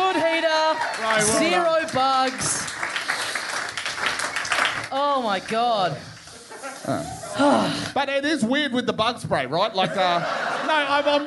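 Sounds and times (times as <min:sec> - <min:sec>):
audience applause: 0:00.0 - 0:06.3
speech: 0:01.2 - 0:02.6, 0:04.9 - 0:06.1, 0:06.9 - 0:11.2
laughter: 0:06.2 - 0:07.9, 0:09.7 - 0:11.2.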